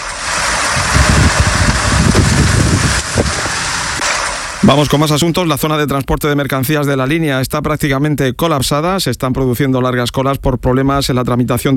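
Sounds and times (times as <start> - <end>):
hail falling in Lardal, Mula, Murcia: 0.0 - 4.6
speech: 4.6 - 11.7.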